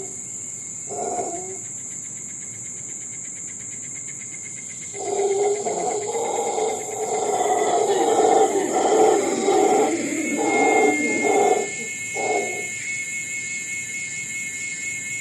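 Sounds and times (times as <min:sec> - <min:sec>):
howler monkeys calling in Costa Rica: 0:00.0 - 0:00.2, 0:00.9 - 0:01.7, 0:04.9 - 0:13.1
insects in Costa Rica: 0:00.0 - 0:15.1.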